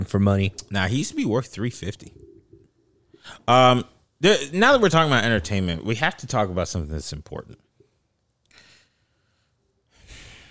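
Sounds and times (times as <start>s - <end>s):
speech: 0.0s - 2.2s, 3.2s - 7.6s
man taking a deep breath: 8.5s - 10.4s.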